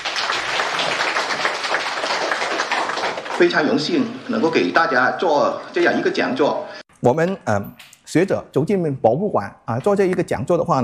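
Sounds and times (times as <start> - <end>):
audience applause: 0.0 - 4.8
speech: 3.4 - 10.8.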